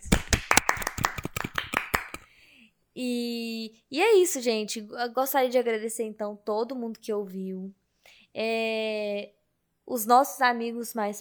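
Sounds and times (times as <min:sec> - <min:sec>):
clapping: 0:00.0 - 0:02.3
speech: 0:03.0 - 0:07.8, 0:08.4 - 0:11.1.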